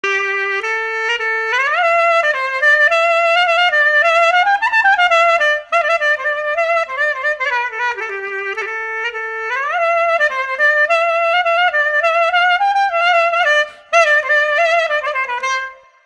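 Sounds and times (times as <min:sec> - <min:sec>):
clarinet: 0:00.0 - 0:16.0.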